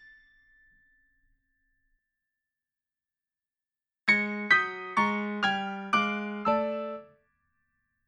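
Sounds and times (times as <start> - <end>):
piano toccata and fugue: 4.1 - 7.1.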